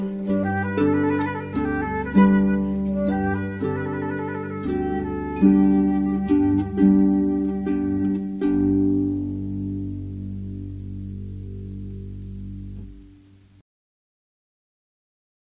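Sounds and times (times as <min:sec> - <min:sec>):
flute: 0:00.0 - 0:09.4
harp: 0:00.0 - 0:13.5.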